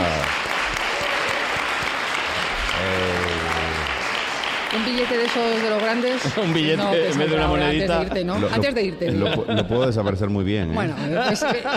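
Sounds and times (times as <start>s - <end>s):
audience applause: 0.0s - 7.8s
speech: 5.0s - 11.7s
laughter: 6.2s - 11.7s.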